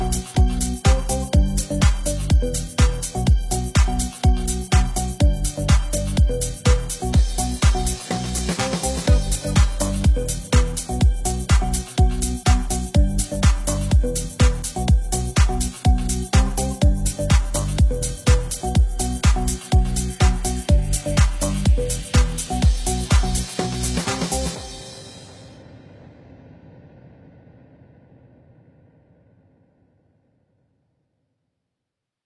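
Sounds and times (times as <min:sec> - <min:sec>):
1990s classic house music: 0:00.0 - 0:25.6.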